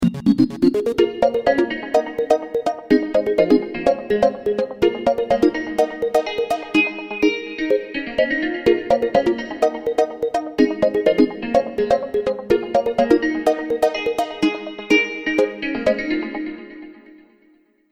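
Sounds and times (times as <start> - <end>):
music: 0.0 - 17.9.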